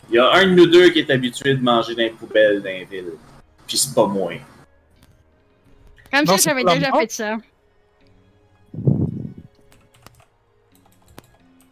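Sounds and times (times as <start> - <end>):
speech: 0.1 - 4.6, 6.1 - 7.5
typing on a computer keyboard: 9.7 - 11.6.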